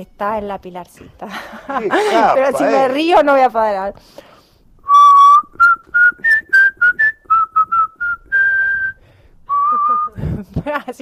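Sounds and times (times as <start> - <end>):
speech: 0.0 - 4.3, 10.4 - 11.0
laughter: 1.2 - 2.9, 9.6 - 11.0
person whistling a melody: 4.8 - 10.2.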